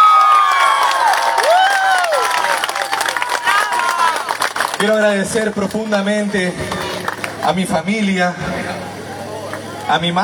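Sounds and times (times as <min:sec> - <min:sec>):
audience applause: 0:00.0 - 0:07.5
speech: 0:04.8 - 0:08.5, 0:09.9 - 0:10.2.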